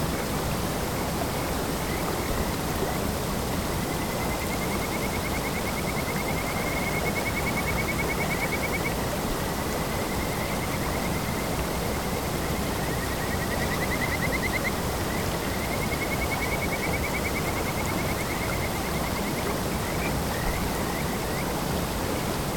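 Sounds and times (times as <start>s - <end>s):
kajika frogs singing in stream: 0.1s - 22.5s.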